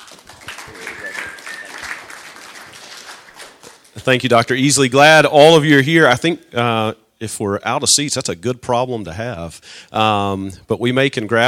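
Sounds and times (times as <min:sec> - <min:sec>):
church congregation clapping to welcome the organisation's president: 0:00.0 - 0:04.2
speech: 0:04.0 - 0:11.4.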